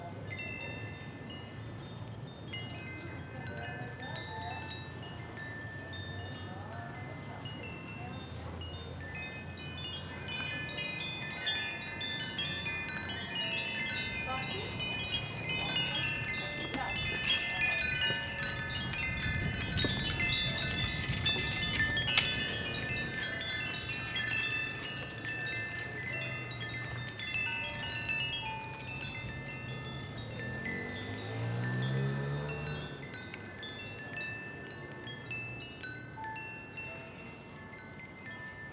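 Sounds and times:
wind chimes in a shop in strong wind: 0.0 - 38.7
traffic: 0.1 - 38.1
strong wind: 10.6 - 31.1.

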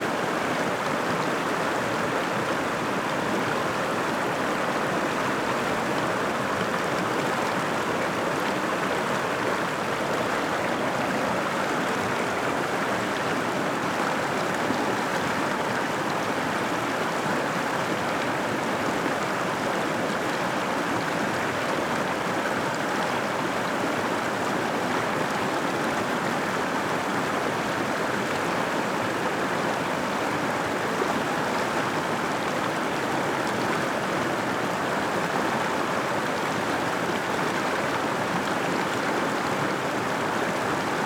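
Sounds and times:
waterfall near the drop: 0.0 - 41.0.

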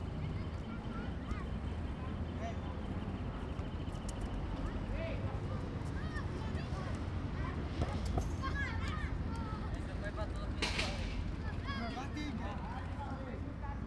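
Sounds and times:
children at a football court: 0.1 - 3.5, 4.6 - 13.7.

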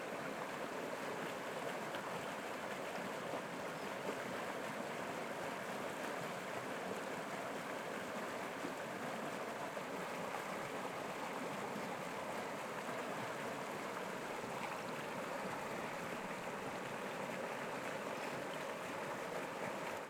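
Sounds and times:
nearby river water in the forest: 0.0 - 20.0.

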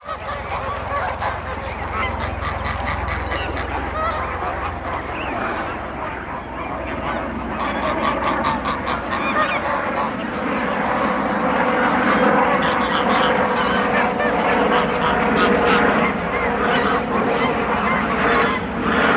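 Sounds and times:
geese honking: 0.0 - 19.1.

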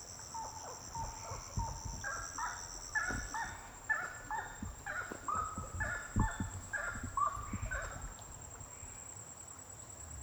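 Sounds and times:
birds singing intensely at night: 0.4 - 8.2.

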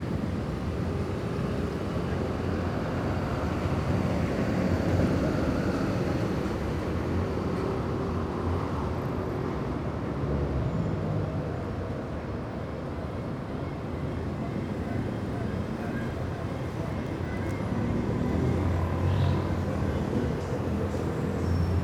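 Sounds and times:
civic square near Rush street in early evening: 0.0 - 21.8.

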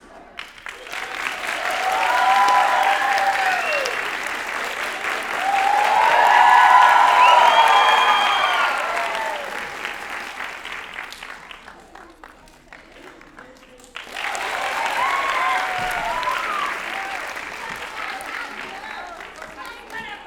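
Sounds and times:
people applauding: 0.3 - 20.2
people cheering: 0.6 - 11.4, 14.0 - 20.2
whistling: 2.0 - 4.2, 5.8 - 9.7.

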